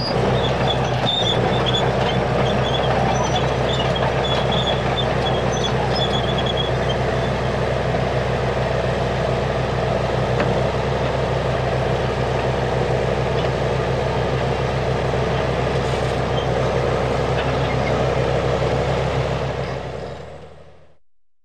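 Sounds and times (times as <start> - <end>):
tank tracks creaking and grinding: 0.0 - 8.2, 12.4 - 20.6
tank moving: 0.0 - 11.2, 11.8 - 20.8.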